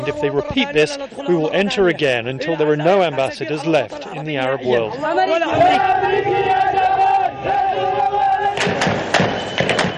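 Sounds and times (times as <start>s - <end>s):
speech: 0.0s - 9.0s
protest crowd chanting in unison: 0.6s - 9.1s
protest crowd shouting: 4.1s - 9.2s.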